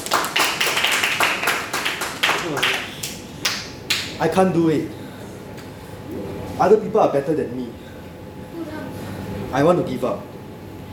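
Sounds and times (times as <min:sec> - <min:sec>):
audience clapping: 0:00.0 - 0:04.2
speech: 0:04.2 - 0:05.0, 0:06.6 - 0:07.8, 0:09.5 - 0:10.3.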